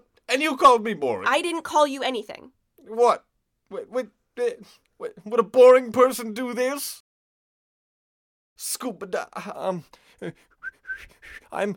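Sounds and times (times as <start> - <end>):
speech: 0.3 - 7.0, 8.6 - 11.7
person whistling to imitate a bird: 10.6 - 11.5.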